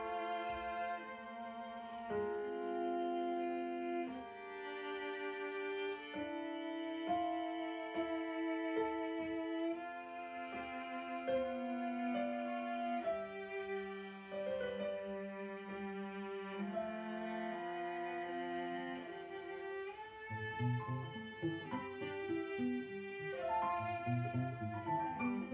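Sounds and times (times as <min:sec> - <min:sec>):
piano at a birthday concert: 0:00.0 - 0:25.5
two cellos at a birthday concert: 0:00.0 - 0:25.5.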